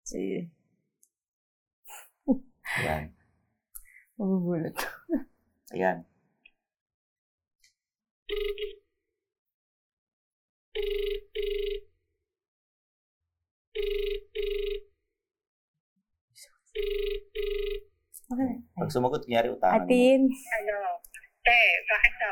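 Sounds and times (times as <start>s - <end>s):
speech: 0.1s - 0.6s, 2.3s - 3.2s, 4.2s - 6.1s, 8.3s - 8.8s, 10.8s - 11.8s, 13.8s - 14.8s, 16.8s - 22.2s
phone ringing over speakerphone: 8.3s - 8.8s, 10.8s - 11.8s, 13.8s - 14.8s, 16.8s - 17.8s.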